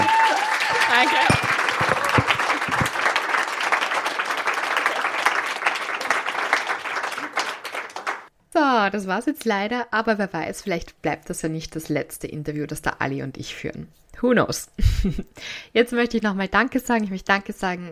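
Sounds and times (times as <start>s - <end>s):
audience applause: 0.0s - 8.3s
laughter: 0.8s - 3.3s
speech: 8.9s - 17.9s.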